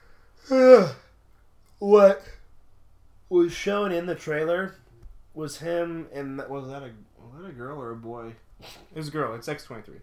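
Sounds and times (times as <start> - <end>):
person yawning: 0.4 - 1.2
speech: 0.5 - 1.0, 1.9 - 2.4, 3.3 - 4.8, 5.4 - 10.0.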